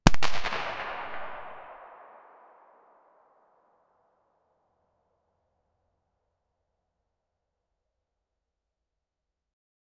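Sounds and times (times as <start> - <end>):
single rifle shot in large room: 0.1 - 2.7.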